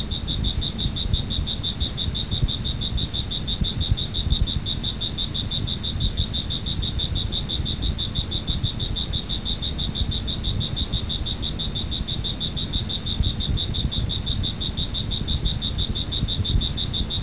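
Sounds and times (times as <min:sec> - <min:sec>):
cricket chirping in a steady rapid pulsed trill: 0:00.0 - 0:17.2.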